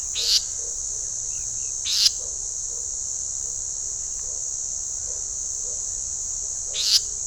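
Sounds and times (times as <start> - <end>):
Leaden flycatcher Myiagra rubecula giving harsh buzzy rasping calls: 0.2 - 0.6, 6.8 - 7.1.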